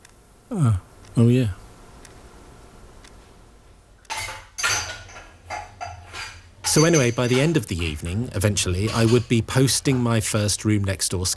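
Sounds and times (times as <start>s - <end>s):
low steady hum: 0.0s - 11.3s
speech: 0.5s - 1.6s, 6.8s - 11.3s
dishes clinking while loading a dishwasher: 4.1s - 10.5s.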